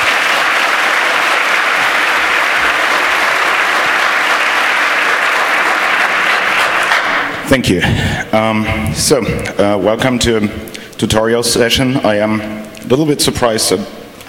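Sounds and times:
audience applause: 0:00.0 - 0:07.7
speech: 0:07.5 - 0:14.0.

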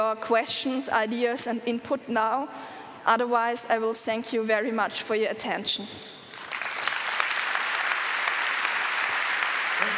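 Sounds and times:
speech: 0:00.0 - 0:06.2
applause: 0:06.3 - 0:09.9.

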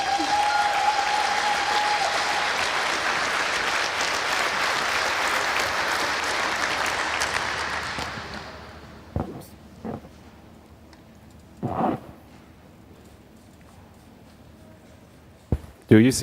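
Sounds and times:
crowd applauding: 0:00.0 - 0:09.1.

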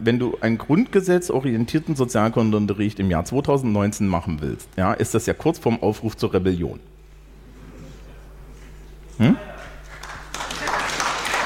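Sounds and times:
speech: 0:00.0 - 0:07.0, 0:09.2 - 0:09.5
audience applause: 0:09.6 - 0:11.4.

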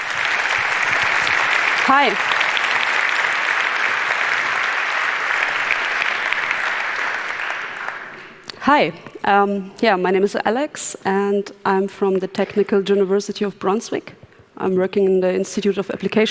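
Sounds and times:
audience applause: 0:00.0 - 0:08.4
speech: 0:01.8 - 0:02.4, 0:08.7 - 0:16.3.

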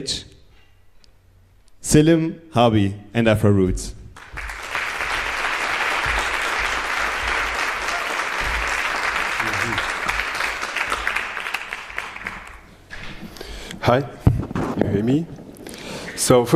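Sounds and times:
speech: 0:00.0 - 0:00.3, 0:01.8 - 0:04.0, 0:13.8 - 0:14.2, 0:14.8 - 0:15.4, 0:16.2 - 0:16.5
crowd clapping: 0:04.2 - 0:12.8.

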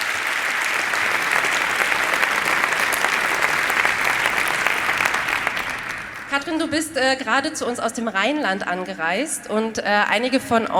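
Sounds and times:
audience applause: 0:00.0 - 0:06.6
speech: 0:06.4 - 0:10.7.

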